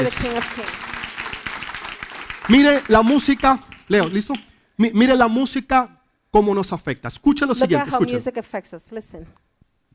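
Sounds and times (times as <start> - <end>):
speech: 0.0 - 0.9, 2.5 - 9.4
audience applause: 0.0 - 4.4
raised voice: 7.5 - 8.2.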